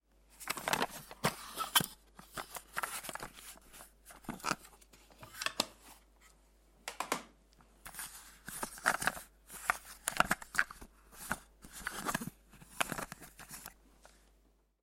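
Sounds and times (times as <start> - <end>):
plastic cassette case being opened and handled: 0.4 - 5.8, 7.9 - 13.8.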